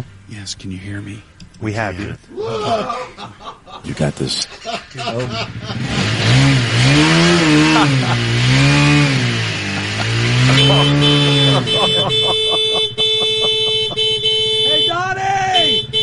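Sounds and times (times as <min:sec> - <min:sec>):
speech: 0:00.0 - 0:08.9, 0:10.5 - 0:12.5
laughter: 0:02.3 - 0:06.0, 0:07.4 - 0:08.4, 0:09.6 - 0:14.3
motorcycle engine running outside a door: 0:05.2 - 0:14.9.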